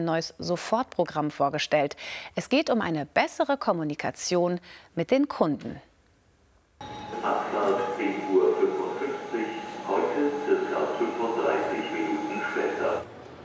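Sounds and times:
speech: 0.0s - 5.9s
busy main railway station ambience at Hannover Hauptbahnhof: 6.8s - 13.4s
trains: 6.8s - 13.4s.

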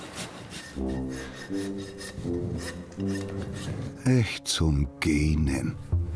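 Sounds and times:
file rasping across an animal's hoof: 0.0s - 3.9s
speech: 0.8s - 6.0s.

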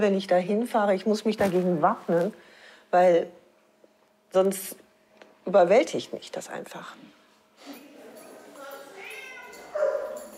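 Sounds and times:
speech: 0.0s - 3.4s, 4.3s - 4.8s, 5.5s - 7.8s
dogs barking and yelping in an animal shelter: 8.9s - 10.3s.

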